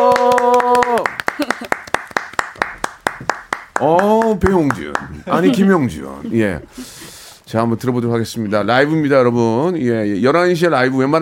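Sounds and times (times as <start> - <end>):
crowd cheering: 0.0 - 1.8
people clapping: 0.0 - 5.8
speech: 3.8 - 11.1.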